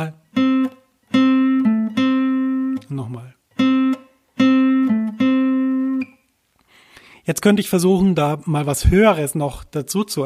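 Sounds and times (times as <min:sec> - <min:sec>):
speech: 0:00.0 - 0:00.2, 0:02.9 - 0:03.4, 0:07.2 - 0:10.2
two notes played on guitar strings: 0:00.0 - 0:06.3.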